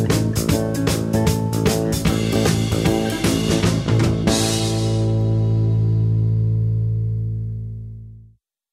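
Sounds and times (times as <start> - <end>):
blues bass solo: 0.0 - 8.3.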